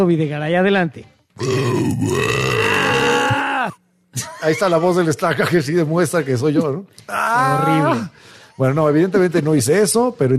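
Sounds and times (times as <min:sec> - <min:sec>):
speech: 0:00.0 - 0:03.0, 0:03.7 - 0:10.3
loud drawn-out burp: 0:01.4 - 0:03.8.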